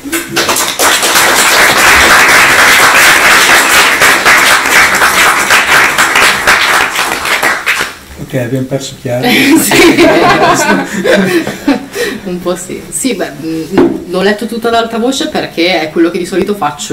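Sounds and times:
applause: 0.1 - 8.0
speech: 8.4 - 16.9
laughter: 9.2 - 12.0.

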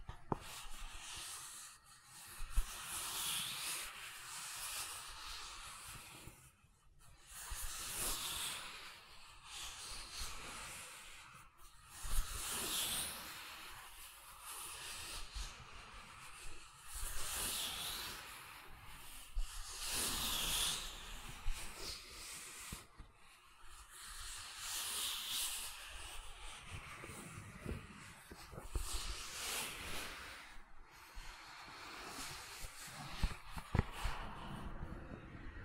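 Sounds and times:
soft airy hiss of gentle silicon sounds: 0.0 - 35.6.

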